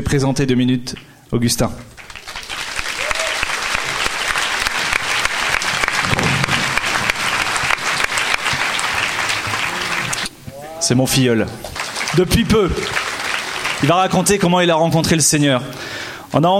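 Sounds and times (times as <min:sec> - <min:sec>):
speech: 0:00.0 - 0:01.9, 0:10.9 - 0:13.0, 0:13.8 - 0:16.5
audience applause: 0:02.0 - 0:10.3, 0:11.7 - 0:14.5.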